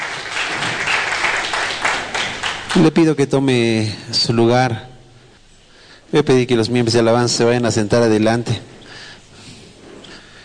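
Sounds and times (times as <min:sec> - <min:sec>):
audience applauding: 0:00.0 - 0:03.2
speech: 0:02.8 - 0:04.9, 0:06.1 - 0:08.8.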